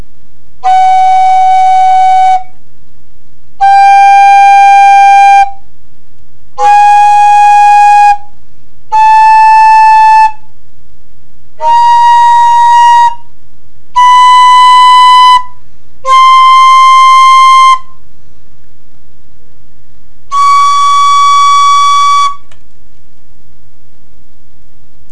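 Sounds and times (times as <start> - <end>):
tenor flute: 0.6 - 2.6, 3.6 - 5.7, 6.6 - 10.5, 11.6 - 18.0, 20.3 - 22.5.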